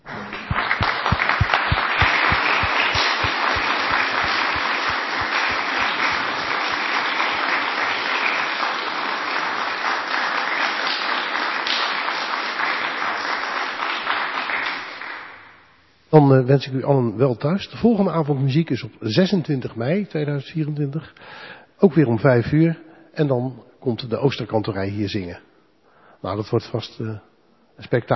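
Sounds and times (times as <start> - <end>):
audience applause: 0.0 - 15.4
speech: 16.2 - 25.5, 26.2 - 28.1.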